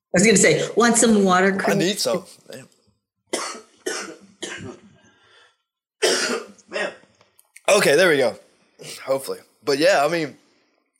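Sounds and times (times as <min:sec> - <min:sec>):
speech: 0:00.1 - 0:02.8, 0:07.7 - 0:10.4
person coughing and clearing throat: 0:03.3 - 0:04.9, 0:06.0 - 0:07.1.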